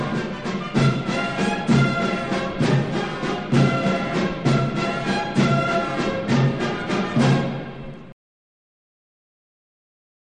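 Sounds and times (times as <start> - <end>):
band playing an infantry march: 0.0 - 8.0.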